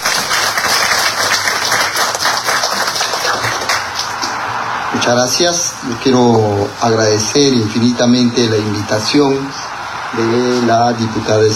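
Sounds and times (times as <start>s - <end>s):
audience applause for speaker: 0.0s - 4.7s
speech: 5.0s - 11.5s.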